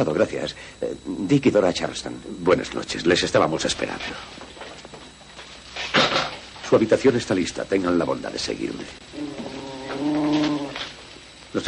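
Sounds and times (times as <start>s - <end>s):
speech: 0.0s - 4.5s, 6.7s - 9.4s
cat: 9.2s - 10.9s.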